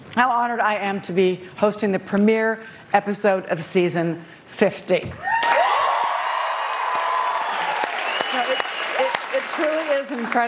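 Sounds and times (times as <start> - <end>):
speech: 0.2 - 5.4, 10.0 - 10.4
studio audience applause and cheering: 5.2 - 10.4.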